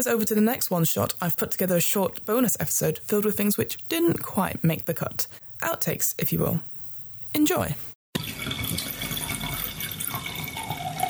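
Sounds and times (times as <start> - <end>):
speech: 0.0 - 6.7, 7.3 - 8.9
water running in a gents urinal: 8.2 - 11.0.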